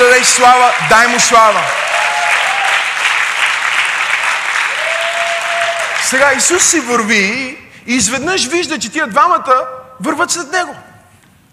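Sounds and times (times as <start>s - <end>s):
audience applause: 0.0s - 6.5s
speech: 0.4s - 2.0s, 6.1s - 10.9s.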